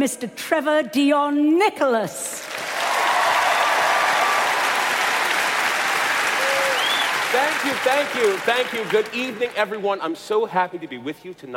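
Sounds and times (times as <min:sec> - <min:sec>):
speech: 0:00.0 - 0:02.5, 0:07.4 - 0:11.5
audience applause in a concert hall: 0:02.4 - 0:09.9.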